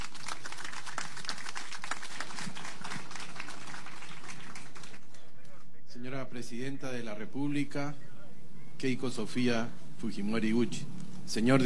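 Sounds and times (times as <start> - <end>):
crowd applauding: 0.0 - 5.6
speech: 6.4 - 8.1, 8.8 - 11.6.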